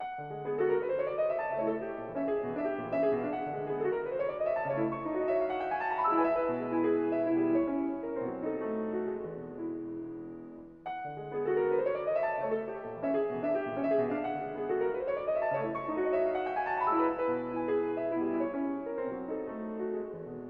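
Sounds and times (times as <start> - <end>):
piano piece: 0.0 - 20.4.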